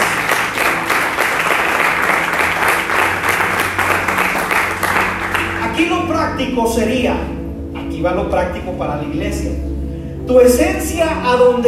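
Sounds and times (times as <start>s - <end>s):
audience applause: 0.0s - 5.6s
speech: 6.4s - 7.4s, 8.0s - 9.7s, 10.3s - 11.6s.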